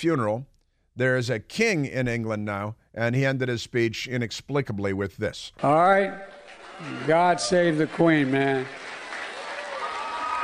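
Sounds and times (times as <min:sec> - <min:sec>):
speech: 0:00.0 - 0:08.9
crowd applause: 0:06.2 - 0:10.4.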